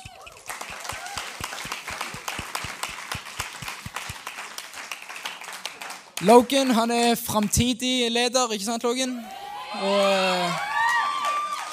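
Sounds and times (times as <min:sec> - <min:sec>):
audience applause: 0:00.0 - 0:06.4, 0:10.3 - 0:11.7
speech: 0:06.2 - 0:10.7.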